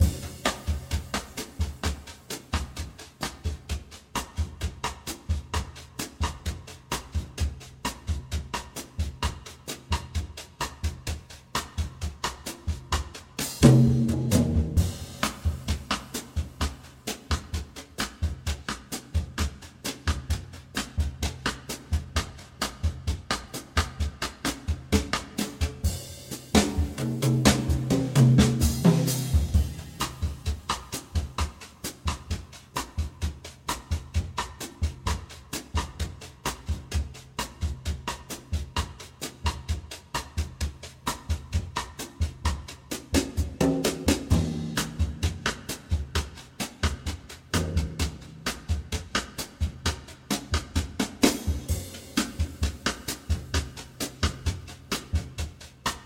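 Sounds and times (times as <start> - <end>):
bossa nova loop at 130 BPM: 0.0 - 56.0.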